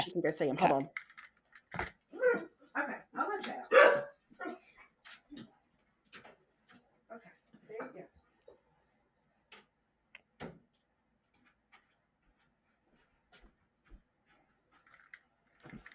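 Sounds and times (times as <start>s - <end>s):
speech: 0.0s - 1.1s, 1.7s - 3.6s
dog yipping: 2.1s - 2.5s, 3.6s - 4.7s.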